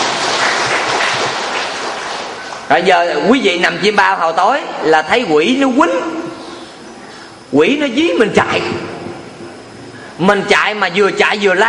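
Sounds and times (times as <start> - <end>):
audience applause at a comedy talk: 0.0 - 2.7
speech: 2.7 - 6.2, 7.5 - 8.9, 10.2 - 11.6.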